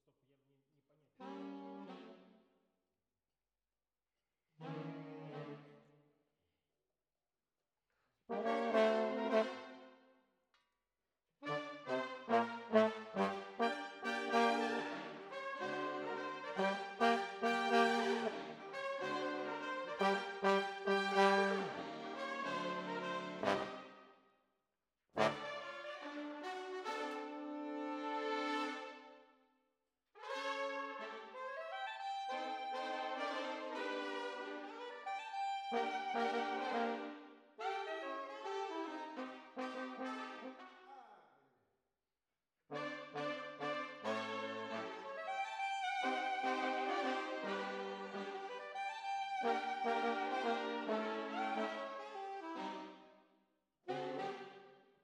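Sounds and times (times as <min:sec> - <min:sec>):
trombones: 0:08.3 - 0:09.9, 0:11.4 - 0:24.0, 0:25.2 - 0:29.1, 0:30.2 - 0:41.0, 0:42.7 - 0:53.0, 0:53.9 - 0:54.7.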